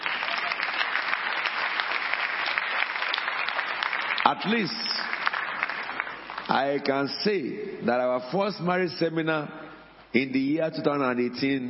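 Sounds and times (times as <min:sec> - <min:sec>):
audience clapping: 0:00.0 - 0:07.0
speech: 0:04.3 - 0:05.1, 0:06.5 - 0:11.6.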